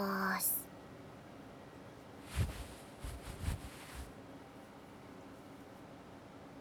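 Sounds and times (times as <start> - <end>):
ASMR face and neck massage: 2.3 - 4.1
breathing during face and neck massage: 2.3 - 4.1.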